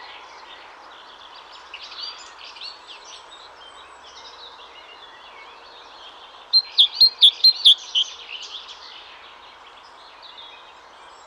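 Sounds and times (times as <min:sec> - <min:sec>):
Great tit buzzy calls: 0:06.6 - 0:08.1.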